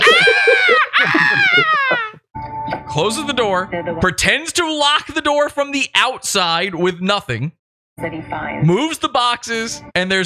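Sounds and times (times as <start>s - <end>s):
laughter: 0.0s - 2.2s
voice imitating a woman screaming: 0.0s - 2.2s
speech: 3.0s - 10.2s.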